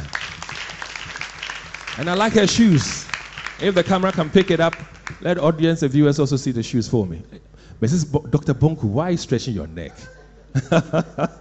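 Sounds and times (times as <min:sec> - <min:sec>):
audience applause: 0:00.0 - 0:05.6
speech: 0:02.0 - 0:03.0, 0:03.6 - 0:11.3
laughter: 0:09.9 - 0:11.3.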